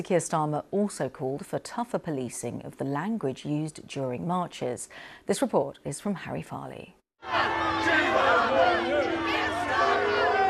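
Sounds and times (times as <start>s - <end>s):
speech: 0.0s - 8.6s
crowd booing and heckling: 7.2s - 10.4s.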